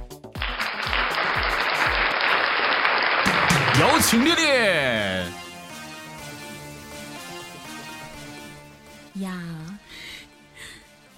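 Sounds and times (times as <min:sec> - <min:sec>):
warm applause: 0:00.4 - 0:05.4
speech: 0:03.8 - 0:05.4, 0:09.2 - 0:09.7.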